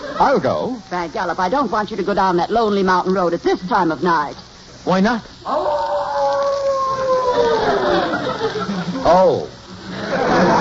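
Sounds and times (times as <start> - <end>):
laughter: 0.0 - 0.7, 7.0 - 10.5
speech: 0.2 - 5.9, 8.5 - 10.4
wolf howling: 5.4 - 8.2.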